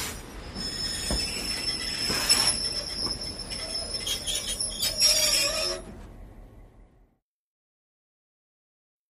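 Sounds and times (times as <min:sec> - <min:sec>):
diesel train wheels squeaking: 0:00.2 - 0:06.0.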